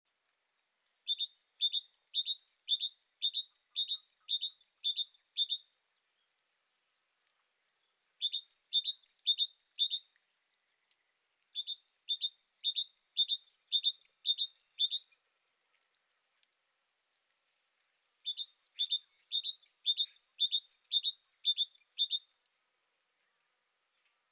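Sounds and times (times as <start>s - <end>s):
great tit high calls: 0.8s - 5.6s, 7.6s - 10.0s, 11.6s - 15.2s, 18.0s - 22.5s.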